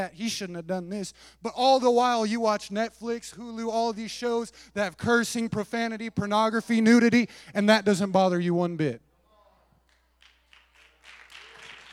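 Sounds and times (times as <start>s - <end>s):
speech: 0.0s - 9.1s
audience hand clapping: 9.8s - 11.9s.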